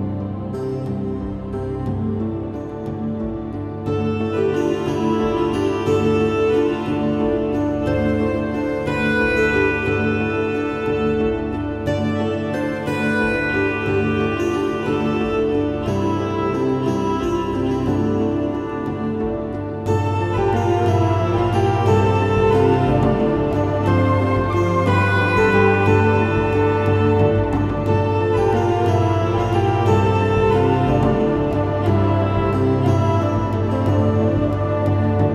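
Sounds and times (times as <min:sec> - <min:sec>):
Celtic fantasy hymn music: 0:00.0 - 0:35.3.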